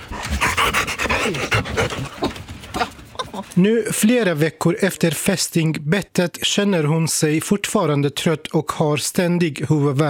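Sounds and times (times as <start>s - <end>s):
dog panting: 0.0s - 3.0s
speech: 1.3s - 2.3s, 3.6s - 10.0s.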